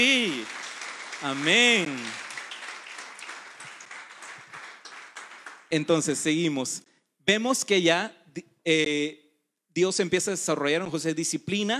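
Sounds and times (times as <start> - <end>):
audience applauding: 0.0 - 6.2
speech: 1.2 - 2.2, 5.7 - 9.2, 9.8 - 11.7.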